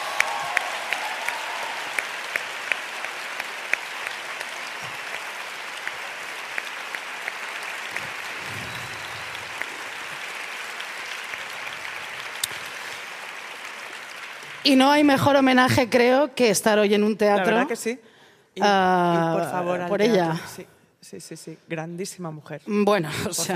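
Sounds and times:
theatre audience applause: 0.0s - 15.1s
speech: 14.6s - 23.5s.

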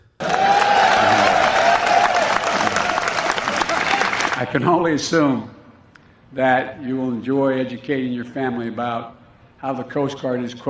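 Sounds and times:
sustained high yell: 0.2s - 4.4s
large crowd cheering: 0.2s - 4.6s
speech: 4.5s - 5.6s, 6.3s - 10.6s.

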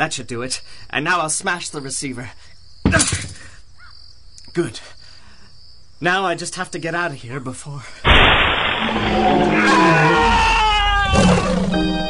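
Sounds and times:
speech: 0.0s - 3.3s, 4.5s - 5.0s, 6.0s - 8.1s, 8.8s - 10.5s
harsh roaring burst: 8.1s - 12.0s.

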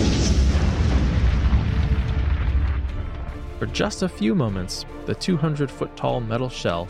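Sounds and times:
crackling debris and dust: 0.0s - 4.0s
heavy explosion rumbling: 0.0s - 4.1s
speech: 3.6s - 6.8s.

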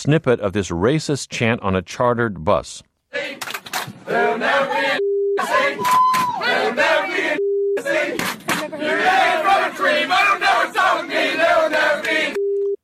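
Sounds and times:
speech: 0.0s - 12.3s
censorship bleep over a word: 4.8s - 6.4s, 7.2s - 8.0s, 12.3s - 12.8s.

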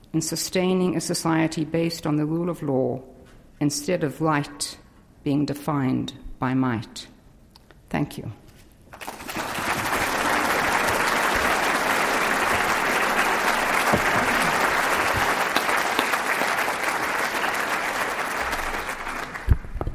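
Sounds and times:
speech: 0.1s - 7.1s, 7.9s - 8.4s
large audience round of applause: 9.0s - 19.7s.

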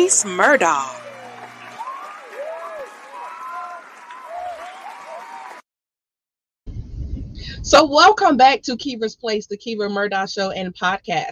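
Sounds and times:
speech: 0.0s - 1.0s, 7.6s - 11.3s
audience applause and cheering welcoming a talk show's host: 0.0s - 5.6s.

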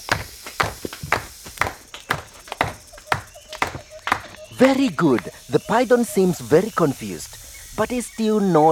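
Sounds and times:
hands clapping: 0.0s - 5.3s
speech: 4.6s - 8.7s.

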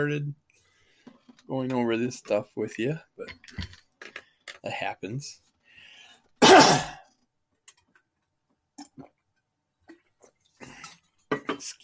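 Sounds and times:
speech: 0.0s - 0.4s, 1.5s - 3.8s, 4.6s - 5.4s, 11.6s - 11.8s
person clearing throat after a swig of water: 6.4s - 7.1s.

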